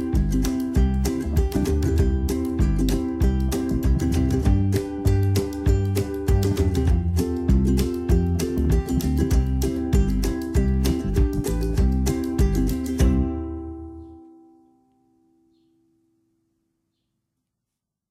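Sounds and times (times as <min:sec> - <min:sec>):
teaser music: 0:00.0 - 0:16.0.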